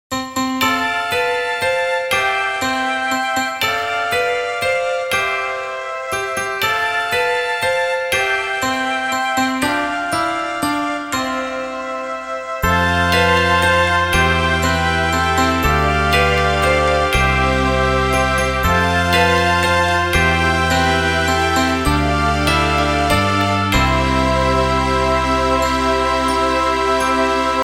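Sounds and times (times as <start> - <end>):
festive waltz: 0.3 - 27.6.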